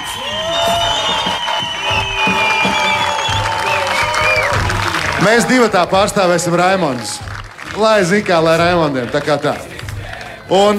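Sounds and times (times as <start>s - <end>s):
sustained horns or whistles: 0.0s - 4.8s
audience applause and cheering: 0.0s - 10.7s
speech: 5.2s - 7.2s, 7.8s - 9.7s, 10.5s - 10.7s.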